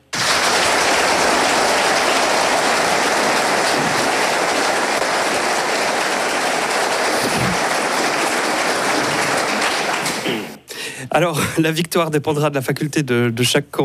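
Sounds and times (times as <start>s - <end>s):
crowd applause in a debate hall: 0.0s - 10.6s
speech: 11.2s - 13.8s.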